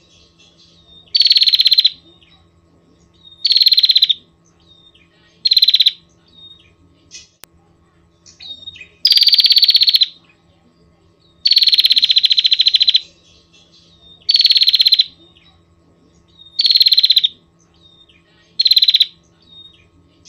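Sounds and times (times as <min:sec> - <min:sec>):
Prinia rattling trills: 0:00.0 - 0:07.4, 0:08.1 - 0:20.2.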